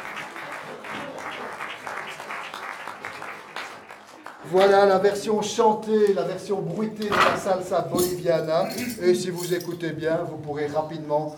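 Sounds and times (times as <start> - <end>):
audience applause: 0.0 - 4.7
speech: 4.4 - 11.3.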